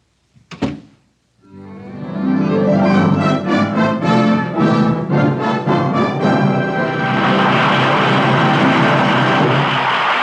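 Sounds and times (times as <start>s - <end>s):
door shutting: 0.5s - 1.0s
orchestral music: 1.4s - 10.1s.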